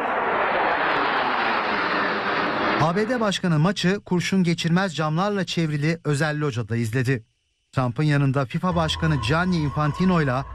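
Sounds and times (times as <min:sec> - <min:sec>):
four US Air Force F-16 fighter jets flying low over a stadium: 0:00.0 - 0:02.9
speech: 0:02.8 - 0:10.5.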